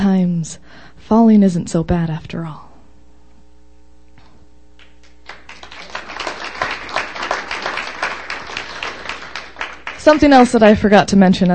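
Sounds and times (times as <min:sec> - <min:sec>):
speech: 0:00.4 - 0:02.7, 0:10.0 - 0:11.5
crowd applauding after a poem: 0:04.8 - 0:10.6.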